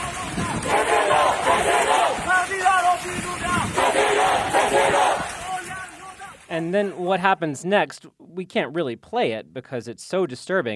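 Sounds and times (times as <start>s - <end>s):
protesters chanting while marching down street: 0.0s - 2.9s, 3.5s - 6.0s
speech: 6.6s - 10.7s.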